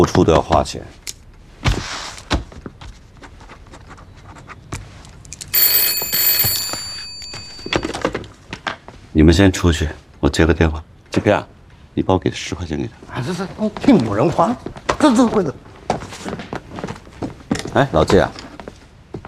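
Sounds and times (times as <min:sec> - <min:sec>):
speech: 0:00.0 - 0:01.0, 0:09.2 - 0:16.4, 0:17.8 - 0:18.4
old-style telephone bell ringing: 0:05.6 - 0:08.1.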